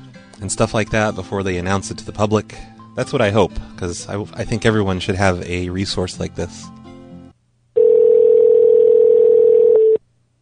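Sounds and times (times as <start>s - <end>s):
speech: 0.4s - 6.8s
call-waiting tone on a phone line: 7.8s - 10.0s.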